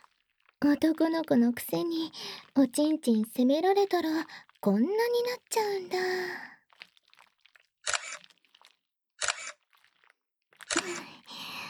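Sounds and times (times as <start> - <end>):
soft voice sounds: 0.6 - 6.5, 10.7 - 11.6
speech: 0.6 - 6.5
camera shutter taking photos: 7.9 - 8.2, 9.2 - 9.6, 10.7 - 11.0.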